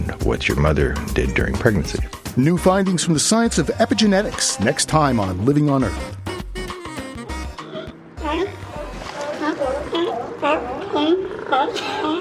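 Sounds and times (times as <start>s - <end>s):
speech: 0.0s - 6.2s
California sea lions barking: 6.0s - 12.1s
California sea lions belching, sneezing, coughing and wheezing: 7.4s - 8.8s, 9.4s - 12.1s.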